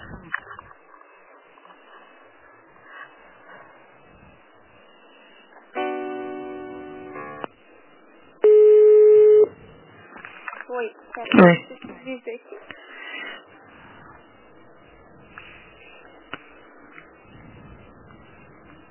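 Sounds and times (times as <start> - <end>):
faint telephone line noise: 0.0 - 18.9
telephone buzzy multi-tone signal during call transfer: 5.7 - 7.5
telephone steady beep during call transfer: 8.4 - 9.6
speech: 10.8 - 13.0.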